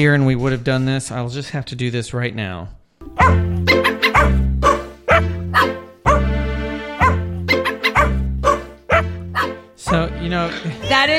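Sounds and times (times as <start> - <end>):
speech: 0.0 - 3.8, 10.4 - 11.1
dogs barking: 3.2 - 6.4, 7.0 - 10.0.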